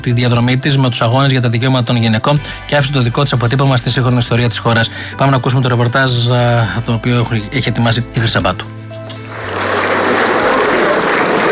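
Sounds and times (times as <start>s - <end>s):
speech: 0.0s - 8.8s
prolonged applause from relatives, friends and politicians at the farewell to Margarita Papandreou: 8.4s - 11.5s.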